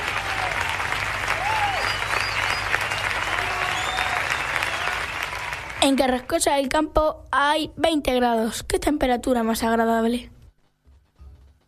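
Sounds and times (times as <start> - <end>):
audience applause: 0.0 - 6.3
speech: 5.8 - 10.4.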